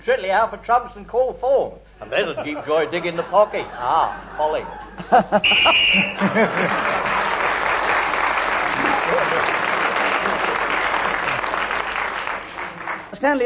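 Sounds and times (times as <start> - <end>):
speech: 0.0 - 7.5, 13.2 - 13.4
laughter: 2.1 - 11.9
game show whistle ending the round: 5.4 - 6.3.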